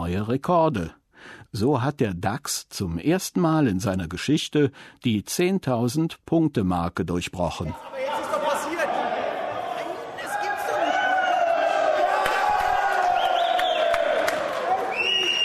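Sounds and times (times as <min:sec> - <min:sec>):
speech: 0:00.1 - 0:08.3
traders cheering on the Frankfurt stock exchange floor: 0:07.7 - 0:15.4.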